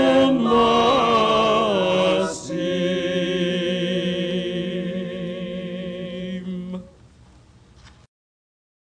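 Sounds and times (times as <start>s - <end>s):
choir singing: 0.0s - 6.9s.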